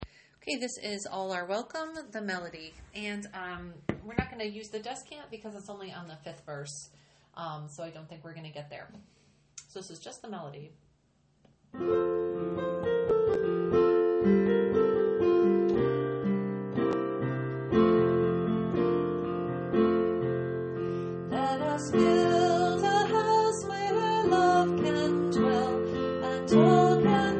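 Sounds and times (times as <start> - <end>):
melody: 11.8 - 27.3.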